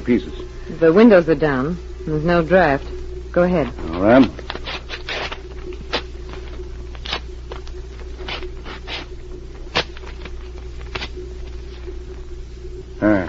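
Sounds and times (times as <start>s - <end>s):
speech: 0.0s - 4.4s
steady low hum: 0.0s - 13.2s
papers being torn into small pieces at a table: 3.8s - 11.2s.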